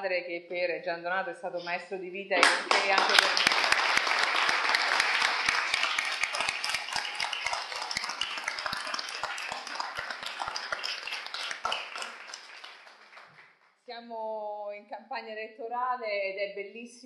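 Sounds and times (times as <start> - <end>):
speech: 0.0 - 3.8, 15.0 - 17.0
audience applause: 2.4 - 13.5.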